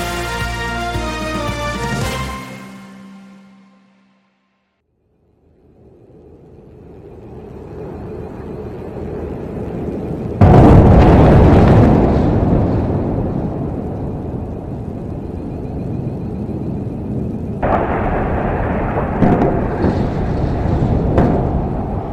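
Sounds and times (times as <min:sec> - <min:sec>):
massive blasts from Israeli airstrikes in Gaza: 0:10.0 - 0:16.0, 0:16.7 - 0:22.1.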